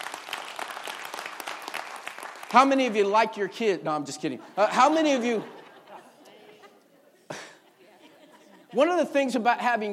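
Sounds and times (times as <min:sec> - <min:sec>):
audience clapping hands: 0:00.0 - 0:03.2
speech: 0:02.5 - 0:05.6, 0:08.8 - 0:09.9
laughter: 0:04.4 - 0:09.2.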